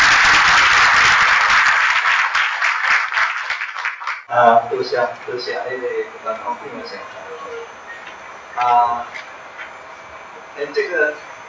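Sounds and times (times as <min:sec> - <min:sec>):
audience applause: 0:00.0 - 0:04.3
speech: 0:04.4 - 0:07.8, 0:08.6 - 0:09.2, 0:10.6 - 0:11.2.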